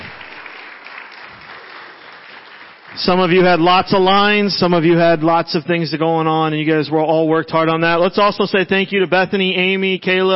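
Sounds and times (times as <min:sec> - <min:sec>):
audience applause for children after their stage performance: 0:00.0 - 0:04.5
speech: 0:03.0 - 0:10.3.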